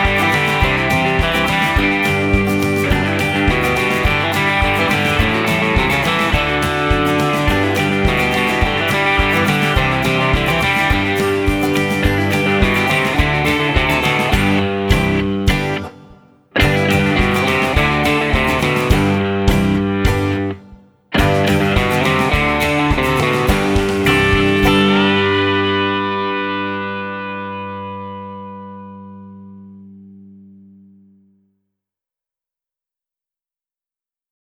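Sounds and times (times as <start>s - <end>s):
trail ride groove music: 0.0s - 20.6s, 21.2s - 26.4s.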